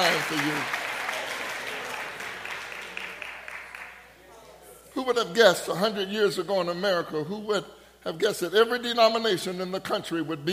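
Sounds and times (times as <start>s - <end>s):
speech: 0.0s - 0.8s, 5.0s - 10.5s
audience clapping hands: 0.0s - 4.1s.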